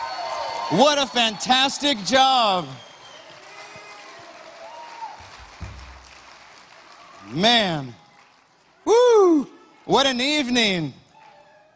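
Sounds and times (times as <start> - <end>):
audience applause: 0.0 - 8.9
speech: 0.7 - 2.9, 7.3 - 8.0, 8.9 - 11.0.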